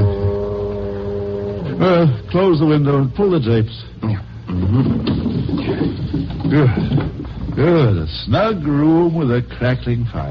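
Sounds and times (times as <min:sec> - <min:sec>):
foghorns in San Francisco: 0:00.0 - 0:02.2
speech: 0:01.8 - 0:10.2.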